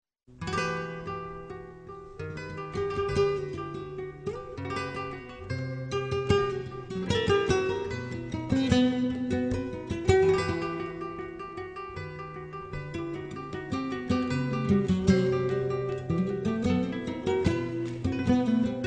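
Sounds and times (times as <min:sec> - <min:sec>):
flamenco dance music: 0:02.4 - 0:18.8.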